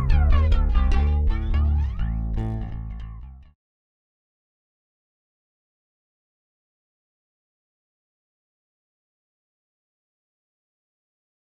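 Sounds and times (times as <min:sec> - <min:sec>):
BH-550 L2000 P bass with passive pickup: 0:00.0 - 0:03.6.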